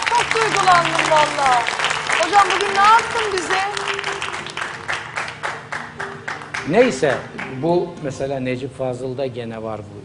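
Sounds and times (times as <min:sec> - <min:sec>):
audience applause: 0:00.0 - 0:07.8
speech: 0:00.3 - 0:03.8, 0:06.7 - 0:10.0.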